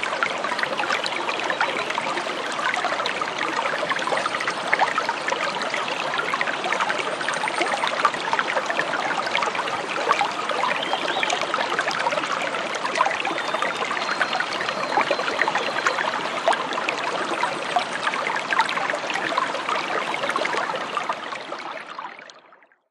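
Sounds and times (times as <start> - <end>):
brook water flowing: 0.0 - 22.7.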